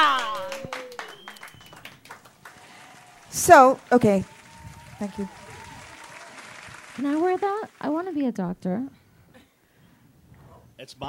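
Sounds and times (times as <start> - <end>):
audience applause: 0.0 - 8.2
speech: 3.4 - 4.4, 5.0 - 5.4, 7.0 - 9.0, 10.8 - 11.0.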